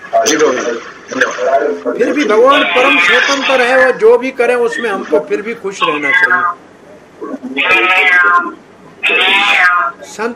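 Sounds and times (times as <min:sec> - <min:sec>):
speech: 0:00.2 - 0:06.7, 0:07.6 - 0:10.3
cat meowing: 0:02.4 - 0:03.7, 0:05.8 - 0:06.6, 0:07.6 - 0:10.0.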